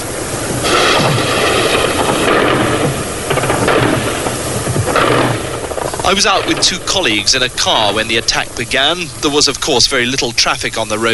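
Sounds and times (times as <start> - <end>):
rooftop machine guns firing anti-aircraft tracer: 0.6 - 9.4
speech: 6.1 - 11.1.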